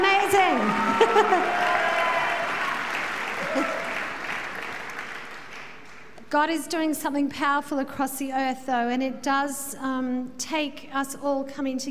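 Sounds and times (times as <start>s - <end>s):
audience round of applause: 0.0s - 6.1s
speech: 1.0s - 1.8s, 6.3s - 11.8s.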